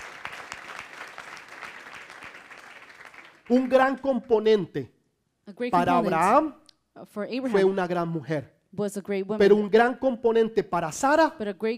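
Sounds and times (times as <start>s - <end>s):
audience applause: 0.0s - 4.0s
speech: 3.5s - 11.7s.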